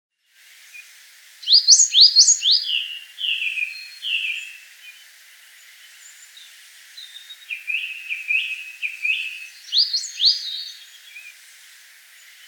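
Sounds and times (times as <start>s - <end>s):
coal tit singing: 1.4s - 4.6s, 7.5s - 11.0s.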